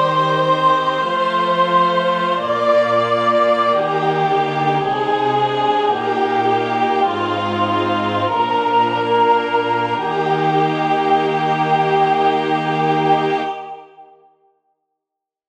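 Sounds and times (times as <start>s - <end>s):
soprano singing: 0.0s - 14.2s.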